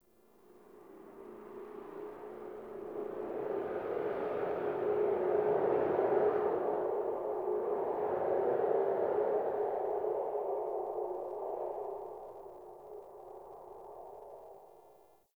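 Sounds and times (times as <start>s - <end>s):
dark wind: 0.4s - 15.0s.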